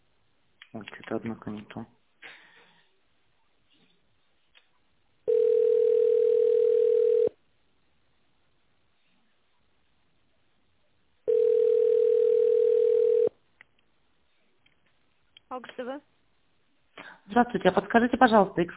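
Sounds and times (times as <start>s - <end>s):
speech: 0.7s - 2.0s, 17.4s - 18.7s
telephone ringback tone: 5.3s - 7.4s, 11.3s - 13.3s.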